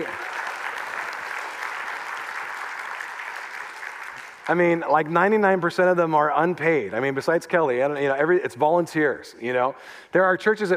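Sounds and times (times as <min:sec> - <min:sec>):
crowd applause for worship team: 0:00.0 - 0:05.1
speech: 0:04.5 - 0:10.7.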